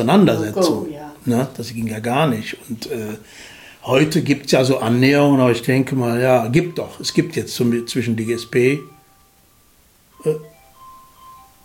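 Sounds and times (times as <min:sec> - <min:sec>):
speech: 0:00.0 - 0:08.9, 0:10.2 - 0:10.5
phone ringing in a jacket pocket: 0:06.6 - 0:09.3, 0:10.1 - 0:11.6.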